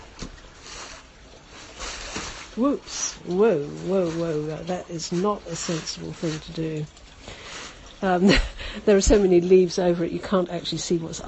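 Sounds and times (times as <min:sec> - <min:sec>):
water trickling in an old wash-house: 0:00.0 - 0:11.2
speech: 0:02.6 - 0:07.0, 0:08.0 - 0:11.2.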